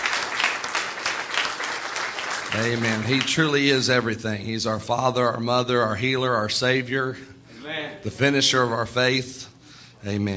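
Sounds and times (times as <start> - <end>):
church congregation applauding in praise during a service: 0.0 - 3.8
speech: 2.5 - 10.3.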